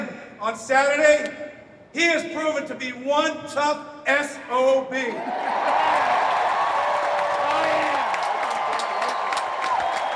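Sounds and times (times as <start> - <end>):
speech: 0.0 - 5.9
large convention crowd applause and cheering: 5.1 - 10.1.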